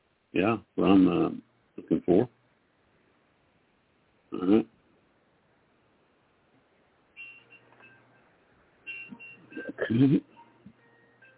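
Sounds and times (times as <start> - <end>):
speech: 0.3 - 2.4, 4.3 - 4.7, 9.8 - 10.3
alarms and alerts going off: 8.9 - 11.3.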